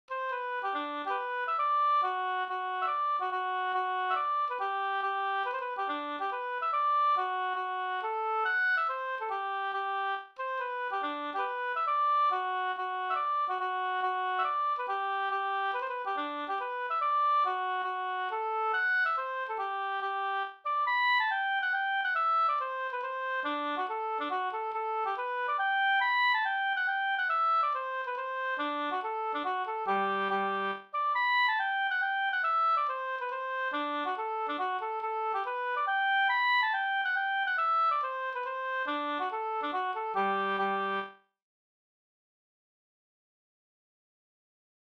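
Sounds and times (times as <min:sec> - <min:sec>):
hambo polska folk dance tune: 0:00.1 - 0:41.1.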